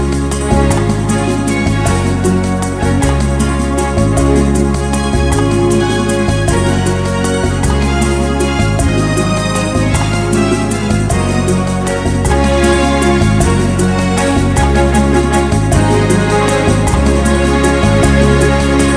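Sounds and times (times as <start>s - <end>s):
smooth and beautiful ballad: 0.0s - 18.9s.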